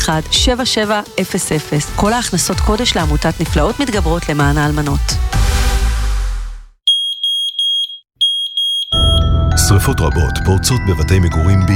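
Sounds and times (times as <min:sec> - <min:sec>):
speech: 0:00.1 - 0:05.5, 0:09.7 - 0:11.7
smoke detector alarm beeping: 0:06.9 - 0:09.3.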